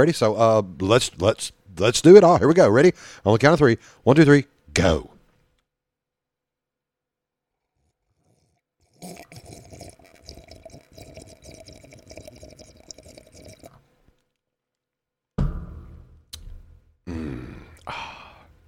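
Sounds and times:
speech: 0:00.0 - 0:05.1
slurping a drink: 0:07.8 - 0:13.8.

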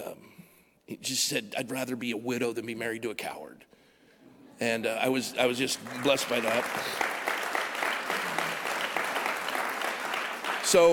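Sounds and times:
speech: 0:00.9 - 0:03.8, 0:04.6 - 0:07.2, 0:10.7 - 0:10.9
audience clapping quickly: 0:05.7 - 0:10.9.

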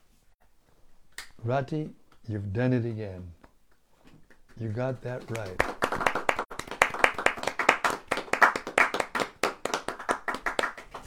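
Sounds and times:
speech: 0:01.4 - 0:03.4, 0:04.6 - 0:05.7
group of people clapping hands: 0:04.2 - 0:11.0.

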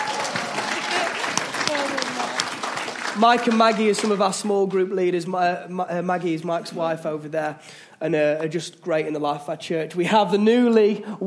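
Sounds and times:
audience applause: 0:00.0 - 0:04.6
speech: 0:03.2 - 0:11.2.

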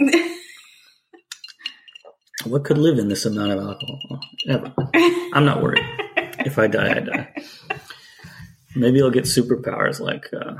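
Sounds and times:
ice clinking against a glass: 0:01.4 - 0:04.8
speech: 0:02.4 - 0:07.7, 0:08.8 - 0:10.5
laughter: 0:02.4 - 0:09.5.

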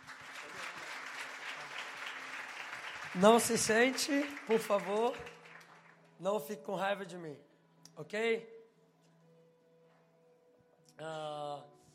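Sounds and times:
audience applause: 0:00.0 - 0:06.1
speech: 0:03.2 - 0:05.4, 0:06.2 - 0:08.6, 0:11.0 - 0:11.8.

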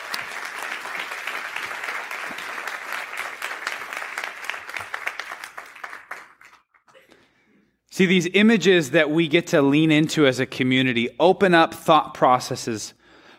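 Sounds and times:
audience applause welcoming local pastors onto the stage: 0:00.0 - 0:06.8
speech: 0:08.0 - 0:13.3.

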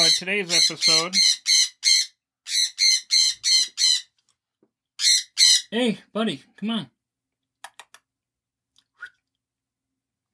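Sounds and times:
pet bird screaming: 0:00.0 - 0:04.1
speech: 0:00.2 - 0:01.6, 0:05.7 - 0:07.0.

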